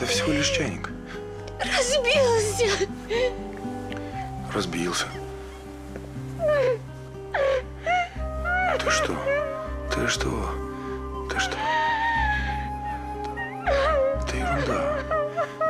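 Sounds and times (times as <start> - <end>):
adult speaking: 0.0 - 0.9, 4.4 - 5.2, 8.8 - 10.6, 11.2 - 11.7, 14.2 - 15.1
child crying and whimpering: 0.0 - 0.9, 1.6 - 3.5, 6.4 - 9.8, 11.4 - 15.6
speech: 0.0 - 1.0, 1.6 - 3.6, 4.5 - 5.2, 8.8 - 9.4, 10.0 - 10.6, 11.3 - 11.8, 14.5 - 15.6.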